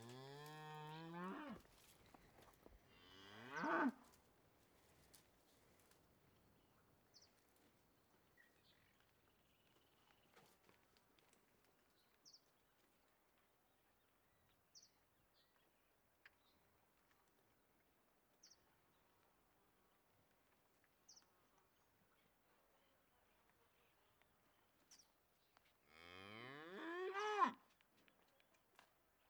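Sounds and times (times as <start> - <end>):
cattle in countryside in Uruguay by day: 0.0 - 4.2, 25.9 - 27.6.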